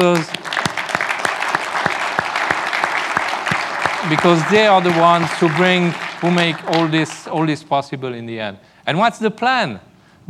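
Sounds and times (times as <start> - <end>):
speech: 0.0 - 0.4, 4.1 - 10.2
room full of people applauding: 0.0 - 7.5.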